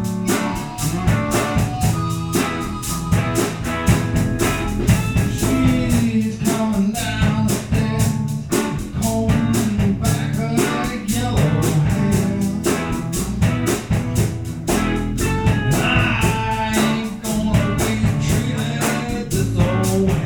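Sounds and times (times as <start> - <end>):
vocals: 0.0 - 2.6, 4.9 - 14.4, 15.2 - 20.2
harmonica: 0.0 - 6.1, 15.0 - 19.4
bass guitar: 0.0 - 20.2
drums: 0.0 - 20.2.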